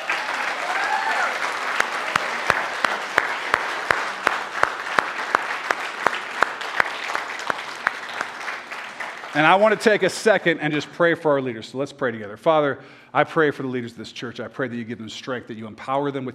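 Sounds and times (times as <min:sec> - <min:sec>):
audience applause: 0:00.0 - 0:10.1
speech: 0:09.4 - 0:16.3.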